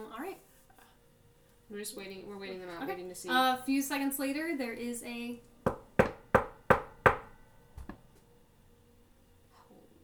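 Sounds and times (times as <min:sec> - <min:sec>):
speech: 0:01.7 - 0:05.5
knocking on a door: 0:05.7 - 0:08.0.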